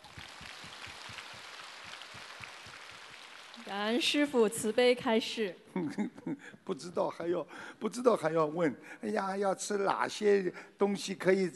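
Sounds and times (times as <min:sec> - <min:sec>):
audience applause: 0:00.0 - 0:03.7
speech: 0:03.7 - 0:11.5.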